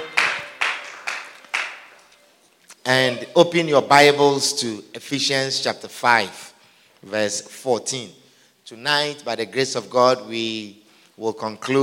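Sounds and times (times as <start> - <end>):
audience clapping: 0.0 - 2.2
speech: 2.8 - 11.8.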